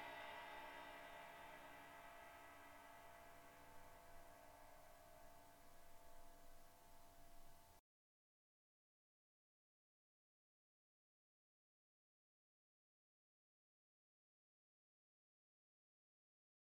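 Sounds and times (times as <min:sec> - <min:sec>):
classic ride cymbal bell: 0:00.0 - 0:07.8.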